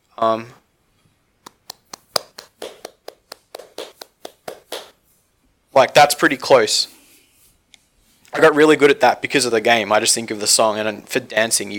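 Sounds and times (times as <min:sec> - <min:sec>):
speech: 0:00.2 - 0:00.6, 0:05.8 - 0:07.0, 0:08.4 - 0:11.7
hands clapping a beat at a set tempo: 0:01.4 - 0:05.0.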